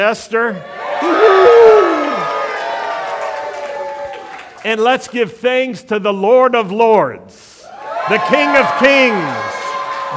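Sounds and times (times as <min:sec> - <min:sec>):
speech: 0:00.0 - 0:01.6, 0:04.6 - 0:10.1
crowd cheering: 0:00.6 - 0:04.6, 0:07.7 - 0:10.1.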